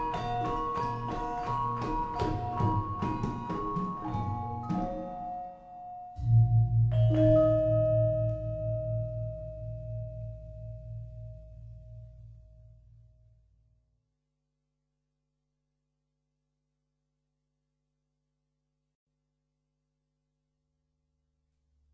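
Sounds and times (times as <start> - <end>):
Javanese gamelan music: 0.0 - 12.4.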